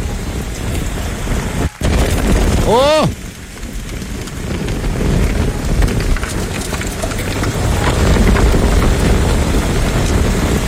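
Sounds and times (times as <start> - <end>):
strong wind blowing along Route 1 north of Tocopilla: 0.0 - 10.6
speech: 2.7 - 3.2.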